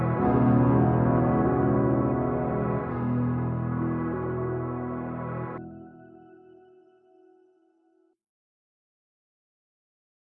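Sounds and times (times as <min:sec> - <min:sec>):
music outro: 0:00.0 - 0:06.0.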